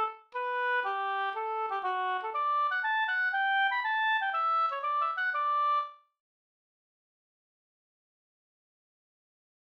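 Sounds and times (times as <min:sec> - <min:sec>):
pols springdans folk dance tune: 0:00.0 - 0:05.9.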